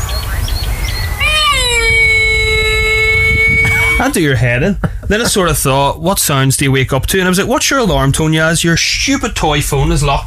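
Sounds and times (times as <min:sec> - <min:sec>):
camels calling at night: 0:01.0 - 0:04.3
speech: 0:04.0 - 0:10.2.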